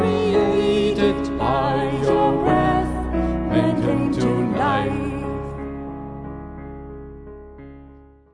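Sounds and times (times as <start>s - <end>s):
Irish song: 0.0s - 5.9s.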